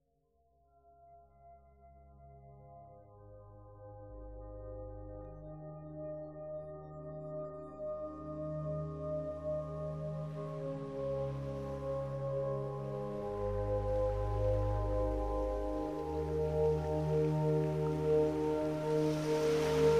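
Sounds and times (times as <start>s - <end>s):
ocean: 7.2s - 19.9s.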